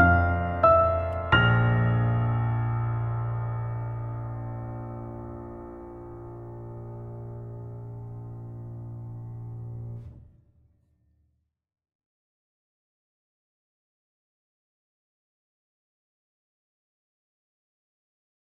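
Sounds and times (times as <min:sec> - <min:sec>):
instrumental music without lyrics: 0:00.0 - 0:10.2.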